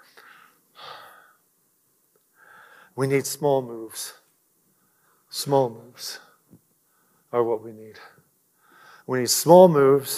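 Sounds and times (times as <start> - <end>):
person breathing: 0.0 - 1.4, 2.3 - 3.0, 4.8 - 5.3, 8.5 - 9.1
speech: 3.0 - 4.2, 5.3 - 6.3, 7.3 - 8.2, 9.1 - 10.1.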